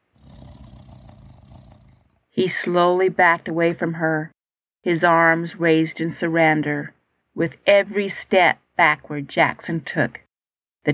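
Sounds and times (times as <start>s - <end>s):
tiger growling softly: 0.0s - 2.2s
speech: 2.4s - 10.2s.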